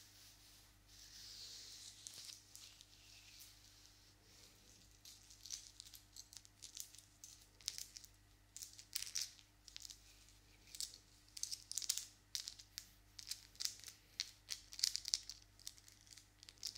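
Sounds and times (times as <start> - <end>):
hands moving with dry crinkly rustles: 0.0 - 6.0
low steady hum: 0.0 - 16.7
long nails scratching and tapping: 5.0 - 10.0, 10.6 - 16.7.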